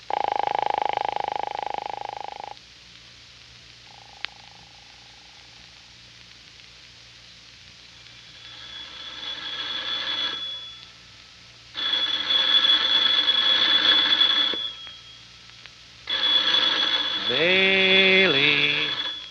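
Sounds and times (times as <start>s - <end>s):
telephone ringing: 0.0s - 2.6s, 8.3s - 10.9s, 11.8s - 15.2s, 16.1s - 19.2s.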